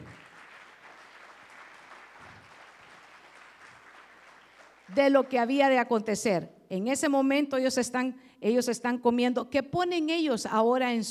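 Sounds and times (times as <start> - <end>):
audience clapping: 0.0 - 5.6
speech: 4.9 - 11.0.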